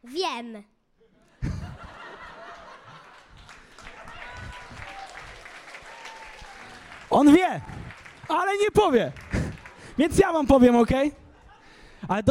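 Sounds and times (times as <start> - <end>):
speech: 0.0 - 0.8, 7.1 - 9.2, 10.0 - 11.2, 12.0 - 12.2
people chuckling and laughing: 1.1 - 5.4, 9.0 - 12.0
group applause: 1.5 - 11.7.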